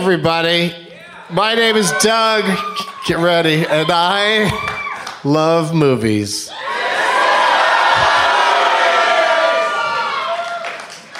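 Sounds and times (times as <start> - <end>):
speech: 0.0 - 6.7
audience screaming and cheering: 0.9 - 5.2, 6.5 - 11.1.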